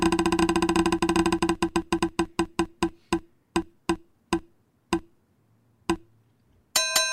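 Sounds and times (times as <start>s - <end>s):
spinning prize wheel clattering with rapid ticks: 0.0s - 5.1s.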